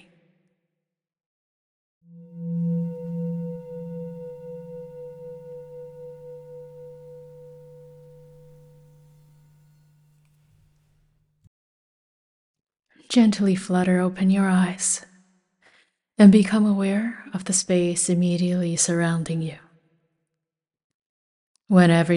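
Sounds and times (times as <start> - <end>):
meditation bell ringing: 2.2 - 10.3
speech: 13.2 - 15.1, 16.2 - 19.7, 21.7 - 22.1.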